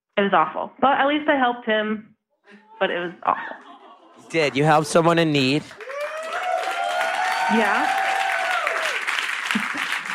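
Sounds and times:
speech: 0.2 - 3.7, 4.3 - 5.8, 7.5 - 8.0
laughter: 2.6 - 5.3, 8.7 - 10.1
applause: 4.6 - 10.1.

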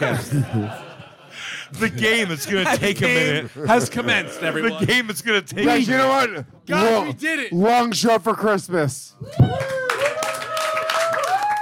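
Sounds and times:
speech: 0.0 - 0.8, 1.7 - 9.8
laughter: 0.0 - 6.2
people clapping: 9.3 - 11.6.

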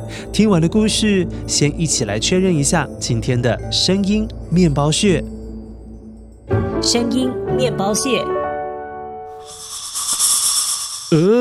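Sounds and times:
speech: 0.0 - 5.4, 6.5 - 8.4, 11.1 - 11.4
snake hissing: 9.3 - 11.4.

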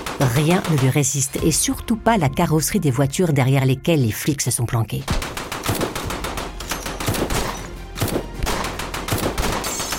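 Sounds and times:
speech: 0.2 - 5.4
automatic rifle firing in bursts: 5.1 - 9.9.

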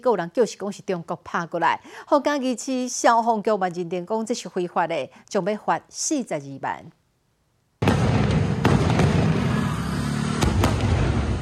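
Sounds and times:
speech: 0.0 - 7.0
fireworks exploding in the sky: 7.8 - 11.3.

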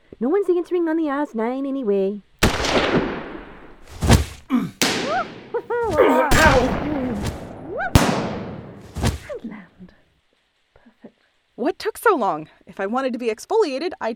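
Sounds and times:
speech: 0.2 - 2.9, 11.6 - 14.1
gunshots in a dramatic scene: 2.4 - 9.4
people shouting: 4.5 - 8.0.

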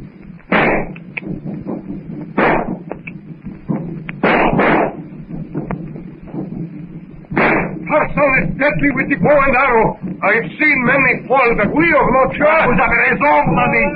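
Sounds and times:
steady low rumble: 0.0 - 13.9
revolver and rifle gunshots: 0.5 - 1.0, 2.4 - 2.9, 4.2 - 5.0, 7.3 - 8.9
speech: 8.6 - 13.9.

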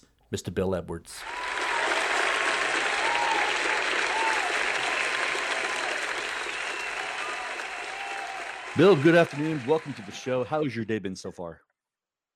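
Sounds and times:
speech: 0.3 - 1.4, 8.8 - 11.7
audience applause welcoming a guest: 1.2 - 10.8.

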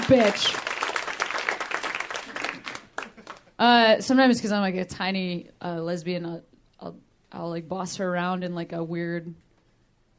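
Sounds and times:
applause from a small group: 0.0 - 3.6
speech: 0.1 - 0.7, 3.6 - 9.4.

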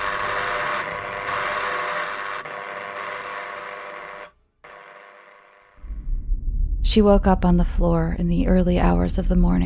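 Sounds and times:
persistent buzzer: 0.0 - 5.8
speech: 6.9 - 9.6.

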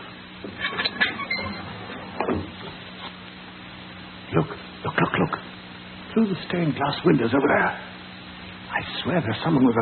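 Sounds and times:
door opening: 0.5 - 2.8
speech: 6.2 - 7.9, 9.1 - 9.8.

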